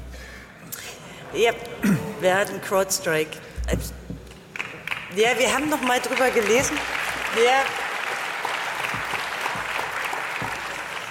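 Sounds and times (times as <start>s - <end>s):
speech: 1.3s - 4.0s, 5.2s - 7.8s
group applauding: 4.3s - 11.0s.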